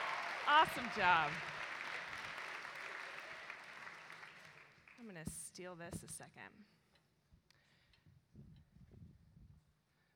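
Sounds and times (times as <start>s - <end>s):
crowd applause: 0.0s - 4.8s
speech: 0.5s - 1.6s, 5.0s - 6.8s.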